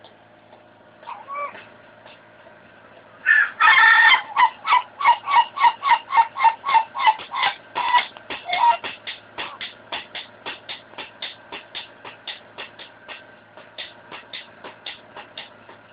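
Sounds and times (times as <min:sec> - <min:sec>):
Ayam Ketawa chicken crowing in laugh-like syllables: 0:03.3 - 0:07.5.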